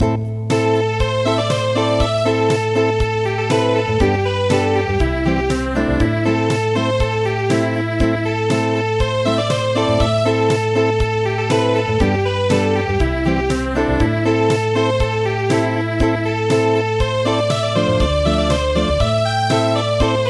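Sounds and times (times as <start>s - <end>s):
acoustic music: 0.0s - 20.2s.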